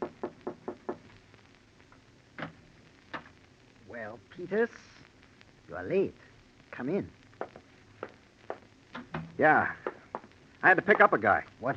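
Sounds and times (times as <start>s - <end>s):
knocking on a door: 0.0s - 1.0s
speech: 4.0s - 4.9s, 5.7s - 7.2s, 9.4s - 9.8s, 10.6s - 11.7s.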